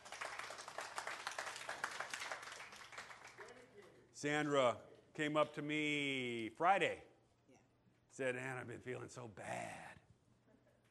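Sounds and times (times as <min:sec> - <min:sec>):
audience applause: 0:00.0 - 0:03.4
speech: 0:04.2 - 0:07.1, 0:08.2 - 0:09.9.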